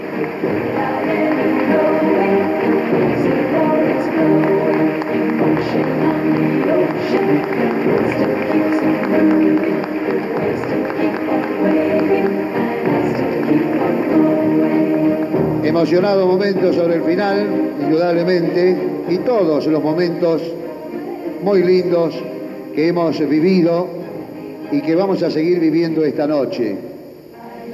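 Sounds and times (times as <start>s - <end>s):
audience applause: 0.0s - 20.2s
speech: 0.2s - 1.5s, 5.7s - 11.1s, 15.8s - 20.6s, 21.4s - 24.0s, 24.7s - 26.9s.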